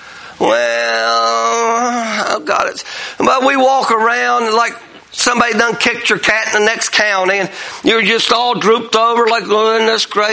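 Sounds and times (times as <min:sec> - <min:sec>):
speech: 0:00.4 - 0:01.1, 0:02.4 - 0:10.3
voice imitating whining: 0:00.4 - 0:02.6.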